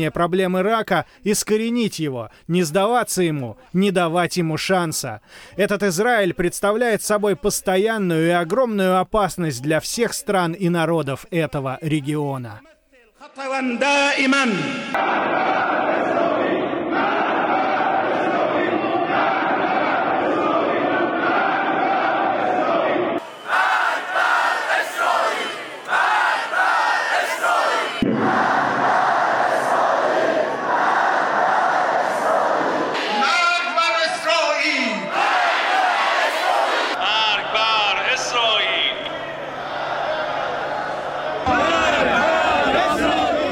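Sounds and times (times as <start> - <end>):
speech: 0.0 - 16.2
crowd chanting slogans: 14.6 - 43.5.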